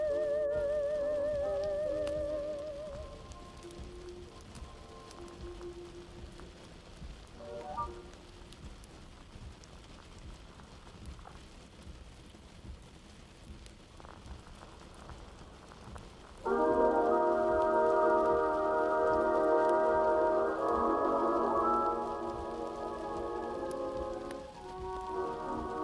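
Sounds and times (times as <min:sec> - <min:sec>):
vintage music from the 1920s to 1940s playing in another room: 0:00.0 - 0:08.7, 0:16.4 - 0:25.8
steady soft crackle: 0:00.0 - 0:25.8.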